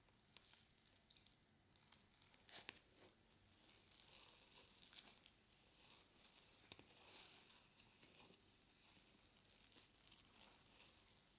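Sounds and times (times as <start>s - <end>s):
sponge with soap and water rustling: 0.2s - 11.3s.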